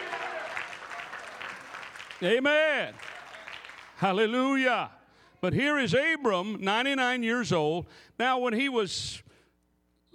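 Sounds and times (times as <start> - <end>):
congregation clapping hands during a sermon: 0.0 - 4.2
speech: 2.2 - 3.1, 4.0 - 9.3.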